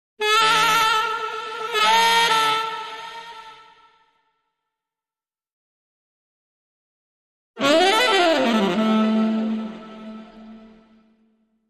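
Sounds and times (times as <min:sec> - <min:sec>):
haunted saxophone: 0:00.2 - 0:04.1, 0:07.6 - 0:11.2.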